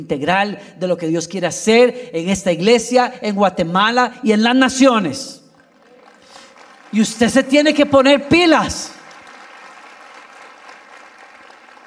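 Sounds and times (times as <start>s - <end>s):
speech: 0.0s - 5.4s, 6.9s - 9.0s
audience applause: 5.5s - 11.8s.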